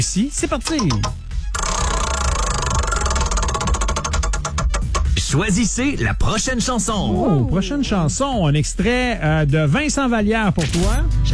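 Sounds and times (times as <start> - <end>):
speech: 0.0 - 1.2, 5.3 - 11.3
prize wheel spinning with ratcheting ticks on a radio show: 0.6 - 5.4.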